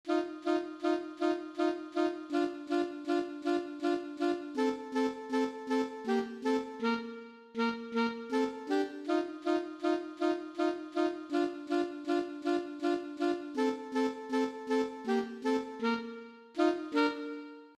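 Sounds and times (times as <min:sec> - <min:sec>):
two alto saxophones: 0:00.1 - 0:17.7.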